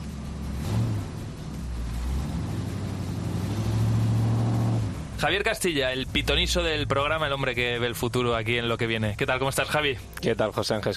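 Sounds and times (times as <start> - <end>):
car engine rumbling and revving: 0.0 - 8.6
speech: 5.2 - 10.9.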